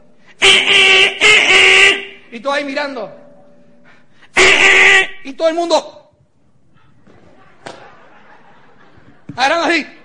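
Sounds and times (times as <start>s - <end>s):
car horn honking in traffic: 0.3s - 2.3s, 4.3s - 5.5s
speech: 2.5s - 3.2s, 4.7s - 6.0s, 9.4s - 10.0s
laughter: 6.8s - 10.0s.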